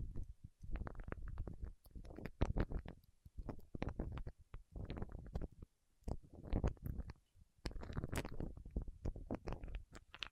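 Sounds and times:
wax fingertips squishing and crackling: 0.0 - 10.3.

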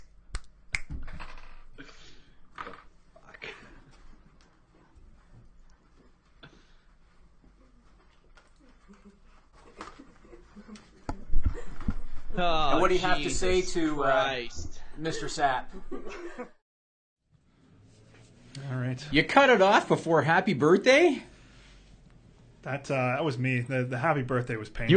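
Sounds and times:
finger snaps: 0.0 - 0.9
laughter: 9.5 - 16.6
speech: 12.4 - 16.6, 19.0 - 21.3, 22.6 - 24.9.

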